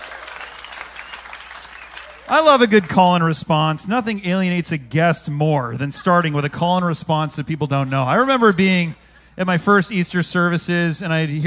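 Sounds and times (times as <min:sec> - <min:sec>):
audience clapping: 0:00.0 - 0:03.2
speech: 0:02.3 - 0:11.4.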